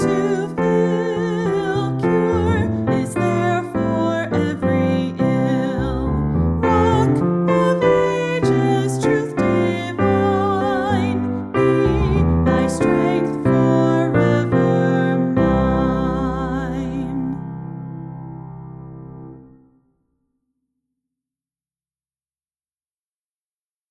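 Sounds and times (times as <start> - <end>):
hymn: 0.0 - 17.4.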